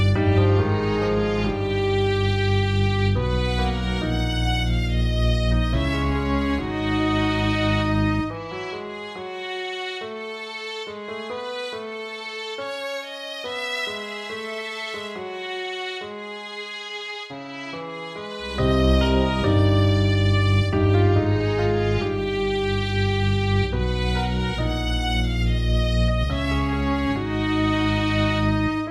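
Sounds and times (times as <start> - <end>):
cello: 0.0 - 28.8.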